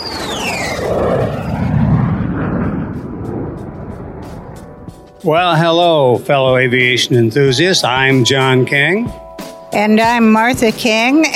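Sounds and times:
airplane taking off as a sound effect: 0.0s - 7.0s
speech: 5.2s - 11.3s.

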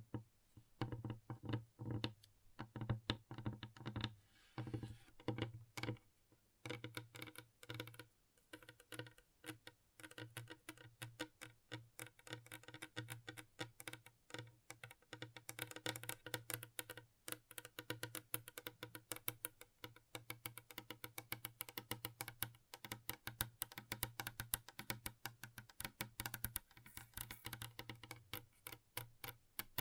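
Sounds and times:
fingertips tapping: 0.0s - 6.0s, 6.6s - 29.7s.

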